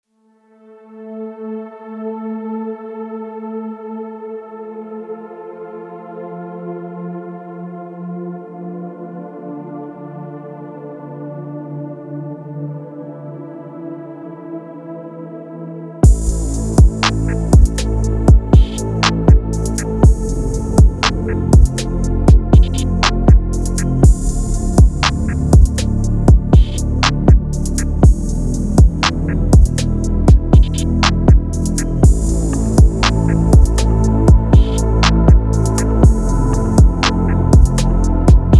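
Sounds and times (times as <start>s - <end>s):
music beat: 16.0s - 38.5s.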